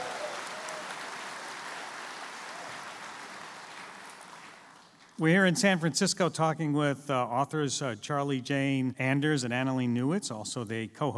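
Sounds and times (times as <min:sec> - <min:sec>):
audience applause: 0:00.0 - 0:05.2
speech: 0:05.2 - 0:11.1.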